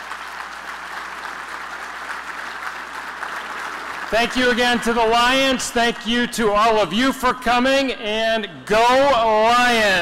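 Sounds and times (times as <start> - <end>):
applause: 0.0 - 6.1
speech: 4.1 - 10.0.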